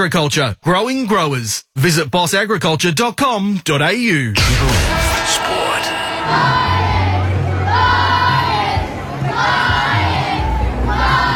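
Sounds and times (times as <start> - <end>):
speech: 0.0 - 5.6, 6.3 - 7.0
Brisbane Lions fans cheering a welcome home at Brisbane's River Stage: 4.4 - 11.3.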